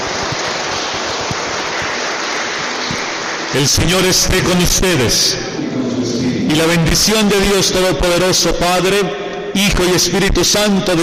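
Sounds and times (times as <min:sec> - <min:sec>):
crowd applauding: 0:00.0 - 0:05.6
speech: 0:03.6 - 0:11.0.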